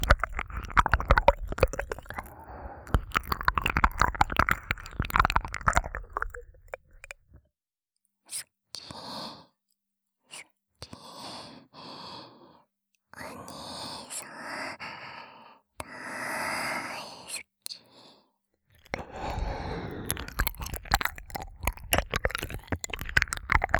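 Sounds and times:
ASMR ear licking sounds: 0.0s - 7.4s, 18.8s - 23.7s.

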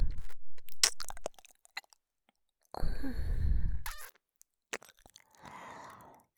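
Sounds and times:
ASMR ear licking sounds: 0.2s - 2.0s, 3.8s - 4.2s, 4.7s - 6.2s.

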